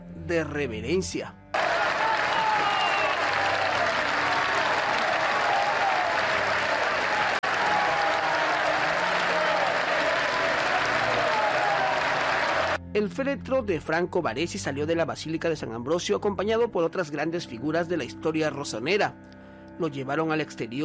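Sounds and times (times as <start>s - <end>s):
speech: 0.3s - 1.4s, 13.0s - 20.8s
large crowd applauding at a funeral: 1.6s - 12.8s.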